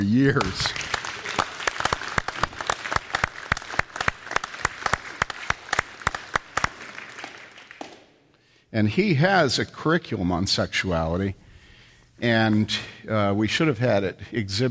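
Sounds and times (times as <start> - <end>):
speech: 0.0 - 0.8, 8.7 - 11.4, 12.2 - 14.6
audience applause: 0.3 - 8.1.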